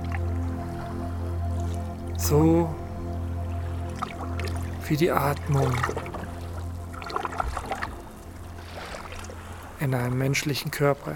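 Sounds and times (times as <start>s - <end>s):
sea water lapping and splashing: 0.0s - 11.1s
speech: 2.2s - 2.8s, 4.9s - 6.1s, 9.8s - 11.1s.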